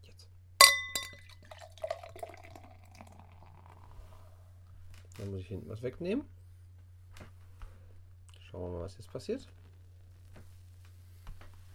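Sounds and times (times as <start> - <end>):
glass clinking: 0.6 - 3.1
beer pouring into a glass: 0.6 - 4.2
speech: 5.2 - 6.4, 8.6 - 9.6.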